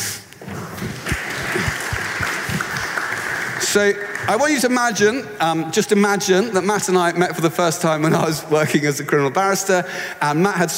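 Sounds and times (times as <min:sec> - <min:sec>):
audience clapping to welcome a drummer onto the stage: 0:00.8 - 0:04.8
speech: 0:03.7 - 0:10.7.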